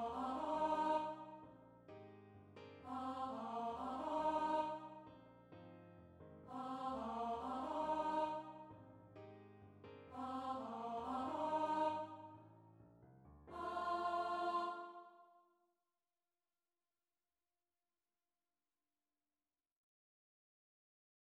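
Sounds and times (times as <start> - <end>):
sopranos of a choir singing: 0.0 - 1.4, 2.8 - 5.0, 6.5 - 8.7, 10.1 - 12.3, 13.5 - 15.2.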